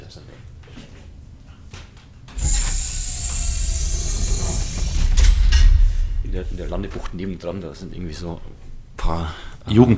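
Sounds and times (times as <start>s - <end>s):
door being closed: 2.3s - 8.2s
speech: 6.4s - 9.9s.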